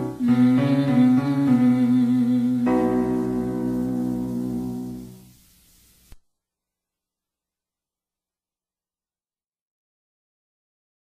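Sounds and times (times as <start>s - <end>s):
person humming mmm in vocal exercises: 0.2s - 5.2s.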